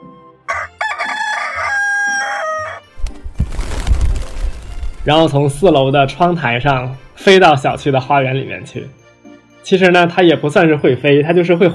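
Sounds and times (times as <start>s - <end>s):
rooster crowing: 0.5s - 2.8s
rustling noise: 3.0s - 5.8s
speech: 5.0s - 9.0s, 9.6s - 11.7s.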